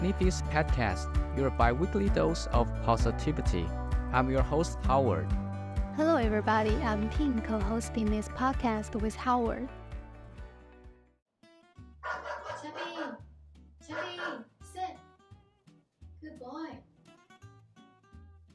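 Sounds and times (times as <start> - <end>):
speech: 0.0 - 5.4, 6.0 - 9.8
dog barking at people outside: 12.0 - 13.2, 13.9 - 14.5.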